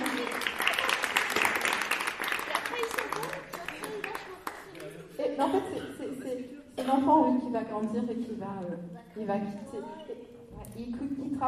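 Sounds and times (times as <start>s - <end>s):
audience applauding: 0.0s - 5.1s
laughter: 3.3s - 6.7s
speech: 6.9s - 11.4s.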